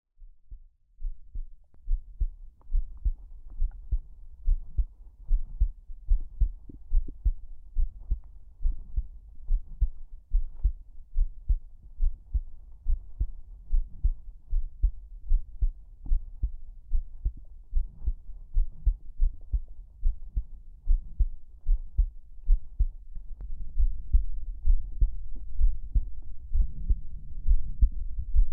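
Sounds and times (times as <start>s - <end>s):
heartbeat: 0.2s - 28.5s.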